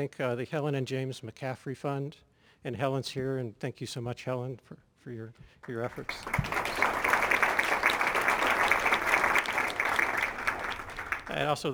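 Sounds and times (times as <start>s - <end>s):
speech: 0.0s - 6.6s, 11.3s - 11.7s
audience applause: 5.7s - 11.7s.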